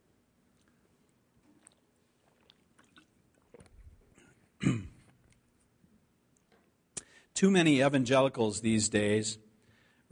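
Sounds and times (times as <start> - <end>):
faint mouth and sipping noises: 0.5 - 5.6
speech: 7.4 - 9.4.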